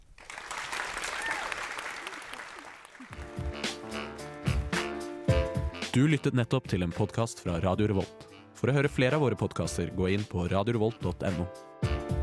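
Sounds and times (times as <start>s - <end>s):
warm audience applause: 0.0s - 4.6s
music with a punchy beat: 3.2s - 5.9s
speech: 6.0s - 11.7s.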